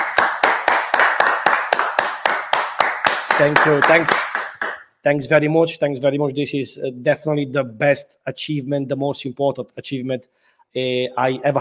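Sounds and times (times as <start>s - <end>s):
audience round of applause: 0.0s - 4.8s
speech: 3.4s - 4.2s, 5.0s - 11.6s.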